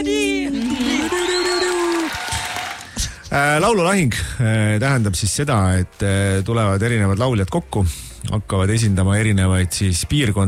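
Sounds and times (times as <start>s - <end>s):
drawn-out vocal cheer: 0.4s - 3.0s
audience clapping on an Estonian TV entertainment show: 0.6s - 3.0s
speech: 3.3s - 10.4s.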